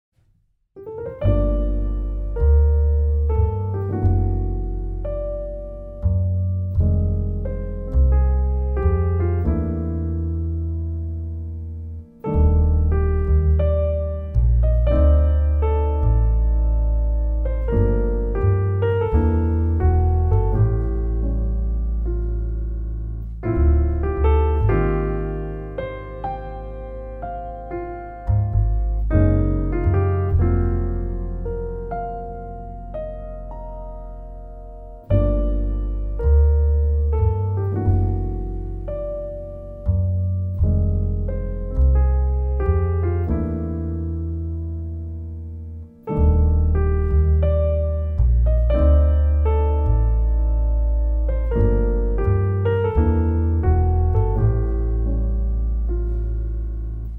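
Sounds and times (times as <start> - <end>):
jazz music: 0.8 - 57.1.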